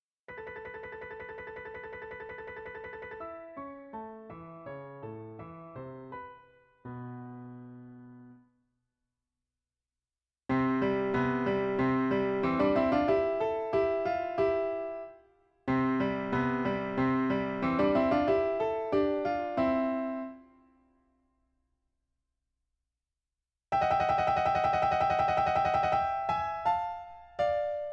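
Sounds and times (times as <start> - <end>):
piano pieces: 0.3 - 8.4, 10.5 - 20.5, 23.7 - 27.9.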